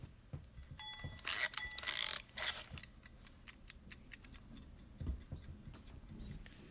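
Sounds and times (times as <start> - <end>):
handling noises: 0.0 - 6.6
mechanical wind-up timer being set: 0.8 - 4.4.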